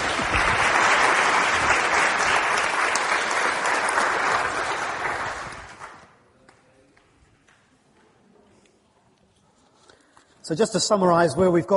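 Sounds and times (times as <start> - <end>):
audience applause: 0.0 - 6.2
speech: 10.5 - 11.7.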